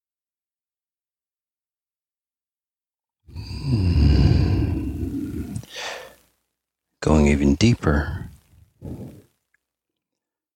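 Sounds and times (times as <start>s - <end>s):
slow deliberate breath in a guided breathing exercise: 3.3s - 6.3s
speech: 3.6s - 4.1s, 7.0s - 9.2s.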